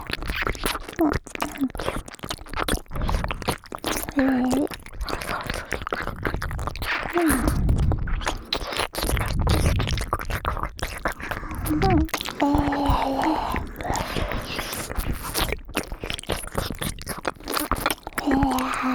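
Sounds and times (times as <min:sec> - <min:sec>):
ear licking with a little saliva: 0:00.0 - 0:18.9.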